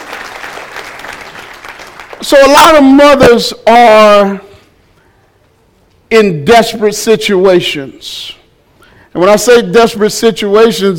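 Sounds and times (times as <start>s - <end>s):
round of applause: 0.0s - 2.3s
speech: 2.2s - 4.5s, 6.1s - 8.4s, 9.2s - 10.9s.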